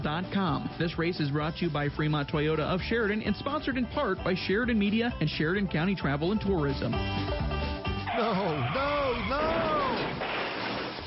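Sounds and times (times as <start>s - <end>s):
speech: 0.0s - 7.6s, 8.2s - 9.5s
tire squeal: 8.1s - 10.3s
car crash: 8.2s - 11.0s.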